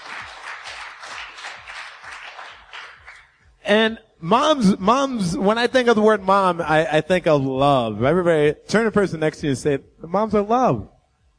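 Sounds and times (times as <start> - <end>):
audience applause: 0.0 - 3.3
speech: 3.7 - 10.9.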